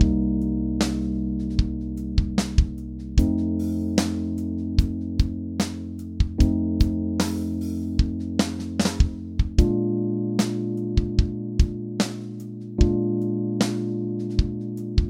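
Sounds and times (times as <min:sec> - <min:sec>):
ii V I backing track chord progression in B flat major: 0:00.0 - 0:15.0.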